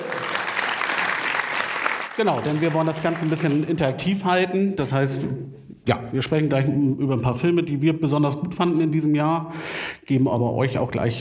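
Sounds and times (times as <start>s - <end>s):
audience applause: 0.0s - 3.6s
speech: 2.2s - 11.1s.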